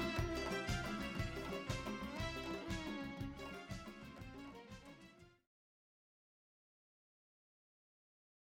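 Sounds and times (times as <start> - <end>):
instrumental music: 0.0 - 5.4.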